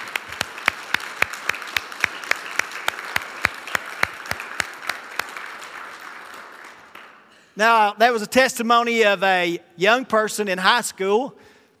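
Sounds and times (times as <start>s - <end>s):
audience applause: 0.0s - 7.3s
speech: 7.6s - 11.5s.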